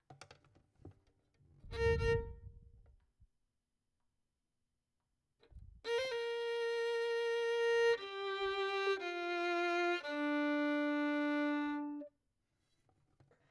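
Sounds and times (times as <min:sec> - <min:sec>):
violin: 0:01.6 - 0:03.0, 0:05.6 - 0:12.1.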